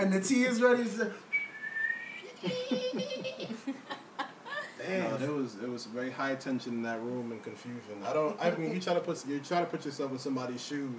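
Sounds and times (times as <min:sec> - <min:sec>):
speech: 0:00.0 - 0:01.3, 0:02.4 - 0:04.0, 0:04.8 - 0:10.9
person whistling to imitate a boiling tea kettle: 0:01.3 - 0:02.3
soft giggling and laughter: 0:02.2 - 0:04.8.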